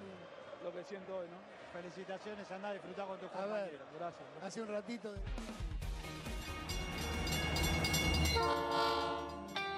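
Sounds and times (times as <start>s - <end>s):
speech: 0.6s - 5.7s, 8.4s - 9.1s
train passing: 6.4s - 9.5s
train horn: 7.6s - 9.6s.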